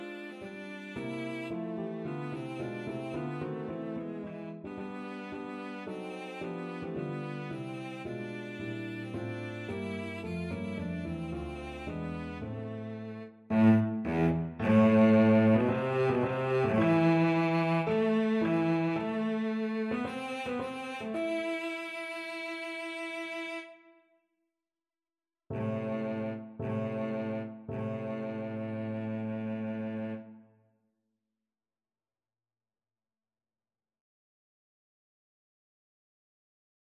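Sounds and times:
cello playing a prelude: 0:00.0 - 0:24.0, 0:25.5 - 0:30.4.

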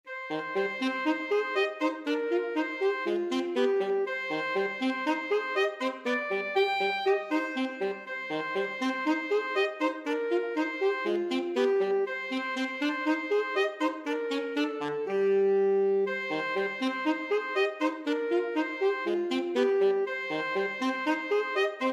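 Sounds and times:
alto saxophone duet: 0:00.1 - 0:21.9.

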